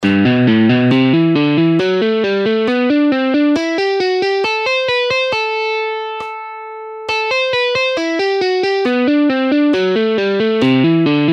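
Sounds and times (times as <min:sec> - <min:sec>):
guitar warm-up exercise at half speed: 0:00.0 - 0:11.3.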